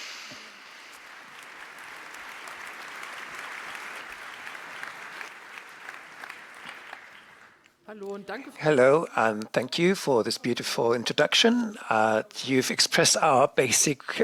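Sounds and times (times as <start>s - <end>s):
audience applause: 0.5s - 7.6s
speech: 7.9s - 14.2s.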